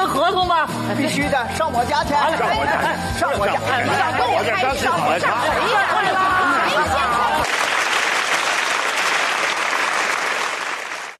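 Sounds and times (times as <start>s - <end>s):
speech: 0.3s - 7.5s
sparse scattered applause: 7.4s - 11.1s.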